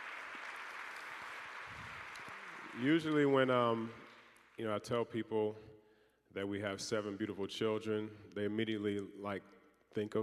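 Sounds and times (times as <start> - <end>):
audience clapping: 0.0 - 4.6
speech: 2.8 - 4.0, 4.6 - 10.2.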